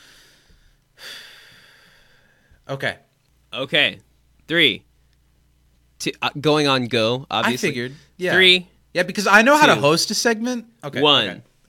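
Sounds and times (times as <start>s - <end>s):
deep breath drawn in sharply: 0.0s - 2.6s
speech: 2.7s - 4.9s, 6.0s - 11.5s.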